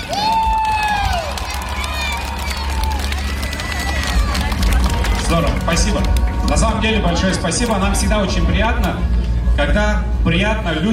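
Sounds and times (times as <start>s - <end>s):
audience cheering outdoors: 0.0s - 5.3s
audience applauding outdoors: 0.0s - 7.8s
speech: 5.8s - 10.9s.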